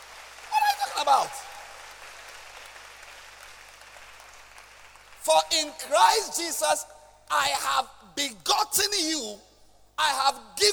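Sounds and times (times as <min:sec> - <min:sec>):
audience clapping: 0:00.0 - 0:05.7
speech: 0:01.1 - 0:01.4, 0:05.2 - 0:10.7.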